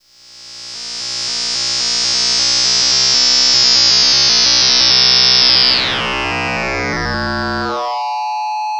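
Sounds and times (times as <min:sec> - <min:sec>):
twisted electric special effect: 0:00.5 - 0:08.7.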